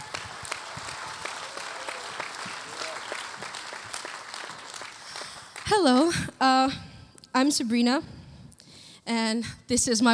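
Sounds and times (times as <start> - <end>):
audience clapping to welcome a speaker: 0.0 - 5.9
speech: 5.7 - 6.8, 7.4 - 8.2, 9.1 - 10.1.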